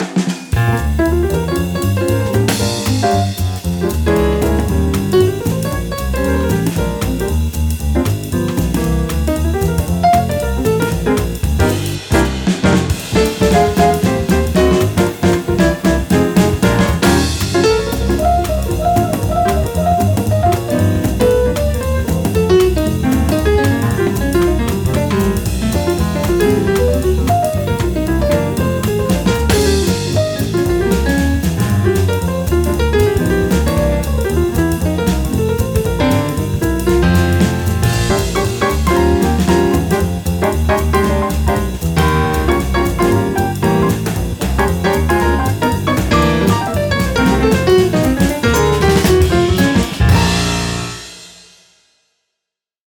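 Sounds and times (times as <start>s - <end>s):
swinging blues music: 0.0s - 51.2s.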